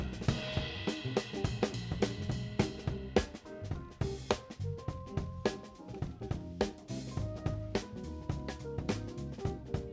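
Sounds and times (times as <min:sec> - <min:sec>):
drum hit recorded with a microphone: 0:00.0 - 0:09.9.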